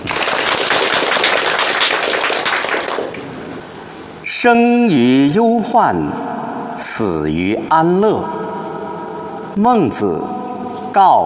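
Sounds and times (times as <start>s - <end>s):
audience applause: 0.0s - 3.2s
speech: 4.4s - 8.4s, 9.6s - 11.2s.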